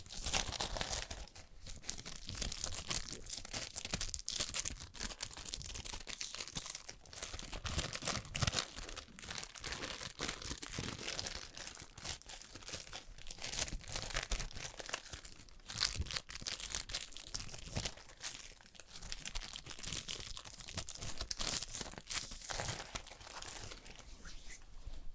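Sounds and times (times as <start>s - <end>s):
makeup crinkling, crackling and tearing: 0.0s - 25.0s.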